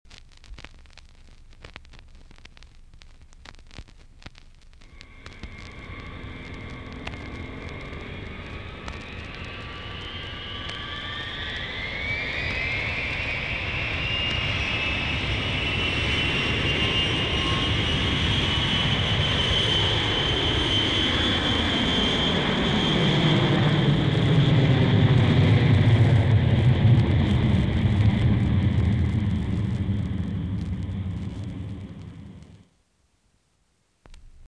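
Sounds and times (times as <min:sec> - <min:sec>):
jet aircraft: 0:04.9 - 0:32.7.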